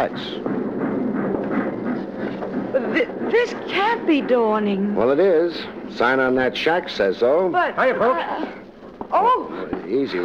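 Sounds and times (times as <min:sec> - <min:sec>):
speech: 0:00.0 - 0:00.6, 0:03.4 - 0:10.2
train at a station: 0:00.0 - 0:07.3.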